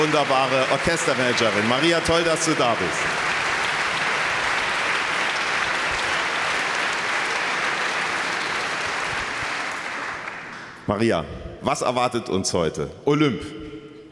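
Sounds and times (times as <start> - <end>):
speech: 0.0 - 3.3, 10.9 - 13.6
audience applause: 0.0 - 10.8.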